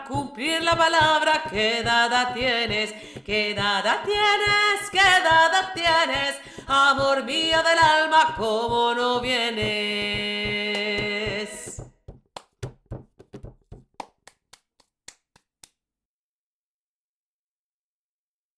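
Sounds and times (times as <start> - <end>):
lead vocal: 0.0 - 11.9.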